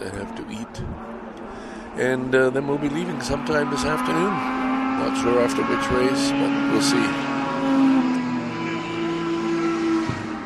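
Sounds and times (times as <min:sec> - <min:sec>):
MG Midget sports cars driving past at a race event: 0:00.0 - 0:10.4
speech: 0:00.1 - 0:01.0, 0:02.0 - 0:07.4.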